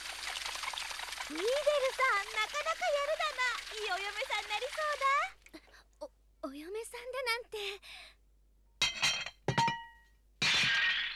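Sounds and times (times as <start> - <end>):
speech: 1.3 - 5.7, 6.5 - 8.0
dinner plates smashing: 8.8 - 11.1.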